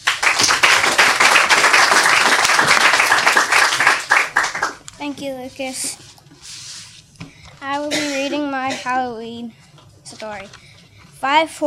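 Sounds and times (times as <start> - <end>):
audience clapping for a young author: 0.0 - 4.9
speech: 5.0 - 6.0, 7.6 - 9.6, 10.2 - 10.6, 11.2 - 11.6.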